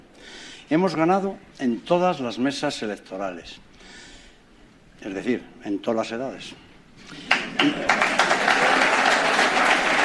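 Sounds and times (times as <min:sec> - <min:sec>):
speech: 0:00.7 - 0:04.0, 0:05.0 - 0:08.4
applause for Florentino Pérez election victory speech: 0:07.2 - 0:10.0.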